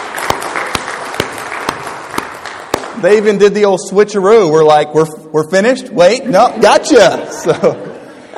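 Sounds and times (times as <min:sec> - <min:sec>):
audience clapping after a choir performance: 0:00.0 - 0:03.3
speech: 0:03.0 - 0:07.9
laughter: 0:06.1 - 0:08.3.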